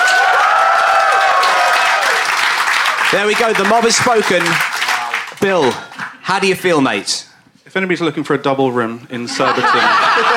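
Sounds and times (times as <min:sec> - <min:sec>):
audience applause in a mock courtroom comedy segment: 0:00.0 - 0:06.2
speech: 0:03.1 - 0:04.7, 0:05.4 - 0:10.3
laughter: 0:09.2 - 0:10.3.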